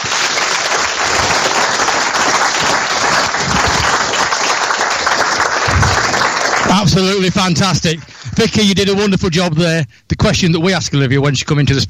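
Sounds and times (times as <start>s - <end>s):
audience applause: 0.0s - 8.6s
speech: 6.8s - 11.8s.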